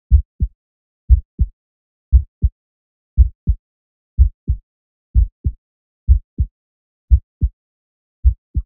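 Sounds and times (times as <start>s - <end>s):
heartbeat: 0.1s - 0.5s, 1.1s - 1.5s, 2.1s - 2.5s, 3.2s - 3.6s, 4.2s - 6.5s, 7.1s - 7.5s, 8.2s - 8.6s.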